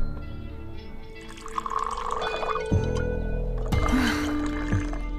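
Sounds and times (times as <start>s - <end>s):
drink pouring into a glass: 1.2s - 5.1s.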